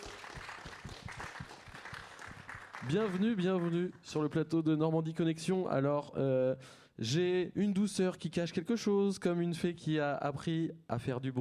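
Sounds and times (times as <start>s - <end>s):
studio audience applause: 0.0s - 3.9s
speech: 2.8s - 11.3s.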